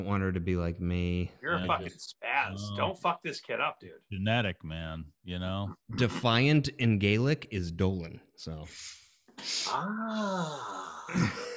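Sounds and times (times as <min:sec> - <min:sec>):
speech: 0:00.0 - 0:11.5
person sniffing: 0:08.7 - 0:09.8.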